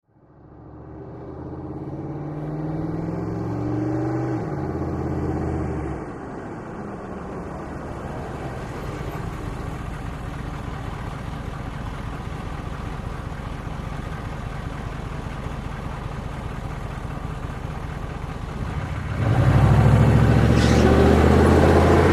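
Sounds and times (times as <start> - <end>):
Humvee driving in fast, idling and driving away: 0.0 - 22.1.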